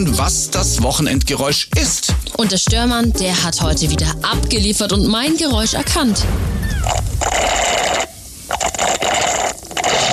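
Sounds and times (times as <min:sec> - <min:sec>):
speech: 0:00.0 - 0:07.8
slurping iced coffee through a straw: 0:06.8 - 0:10.1.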